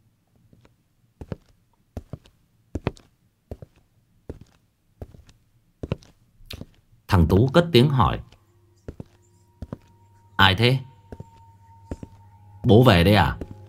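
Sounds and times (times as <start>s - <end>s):
heavy scuffing footsteps outside: 0.5s - 6.9s, 8.2s - 10.0s, 11.1s - 13.6s
low hum: 6.9s - 13.6s
speech: 7.3s - 8.3s, 10.4s - 10.9s, 12.7s - 13.4s.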